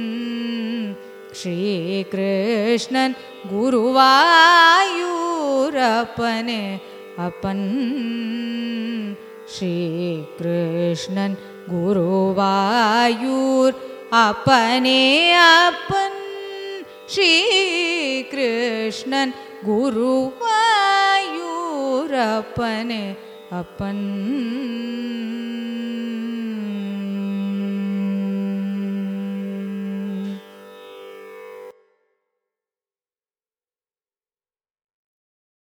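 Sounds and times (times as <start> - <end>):
carnatic raga: 0.0 - 32.2.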